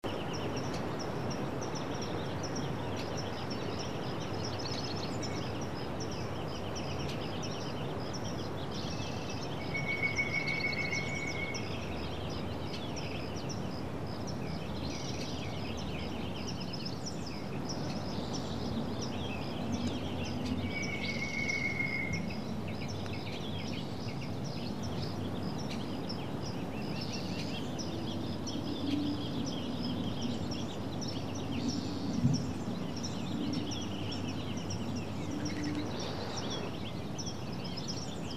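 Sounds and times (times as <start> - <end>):
distant birds in a meadow: 0.0 - 38.3
traffic: 0.0 - 38.3.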